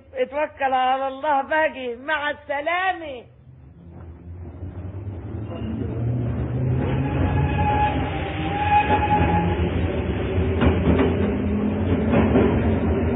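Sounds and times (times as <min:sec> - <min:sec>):
speech: 0:00.2 - 0:03.4
morning passenger train bound for Cairo rumbling: 0:03.3 - 0:13.1
faint high squealing tones: 0:05.3 - 0:09.9.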